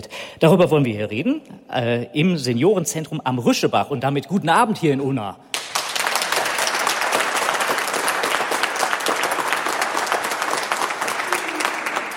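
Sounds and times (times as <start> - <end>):
speech: 0.0 - 5.5
audience applause: 5.5 - 12.1.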